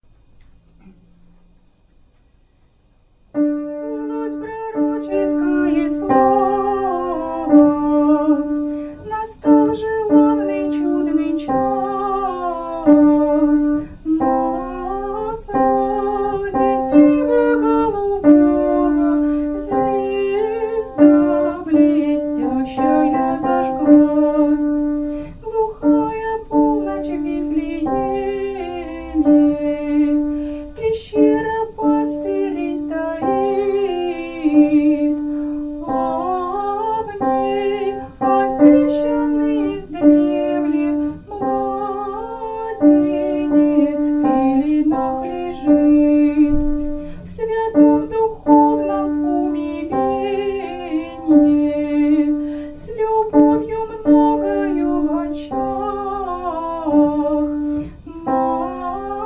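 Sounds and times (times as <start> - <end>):
piano: 3.3 - 59.2.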